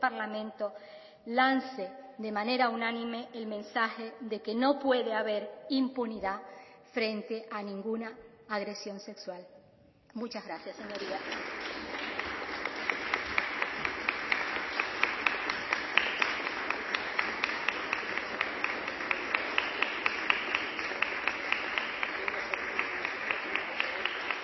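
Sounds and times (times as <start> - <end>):
speech: 0.0 - 11.6
applause in a parliament chamber: 10.6 - 24.4.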